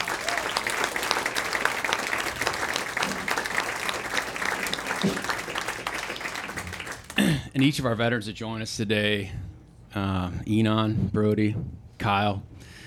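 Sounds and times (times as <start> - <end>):
crowd clapping: 0.0 - 8.0
speech: 5.0 - 5.3, 7.6 - 12.5.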